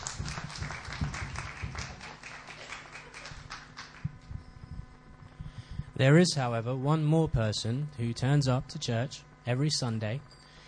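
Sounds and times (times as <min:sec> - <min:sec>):
audience applause: 0:00.0 - 0:04.2
speech: 0:06.0 - 0:10.4.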